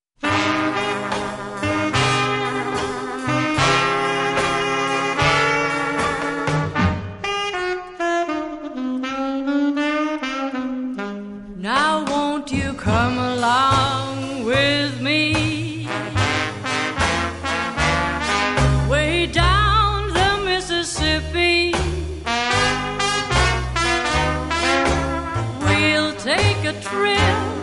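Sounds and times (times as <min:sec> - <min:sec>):
blues music: 0:00.2 - 0:27.6.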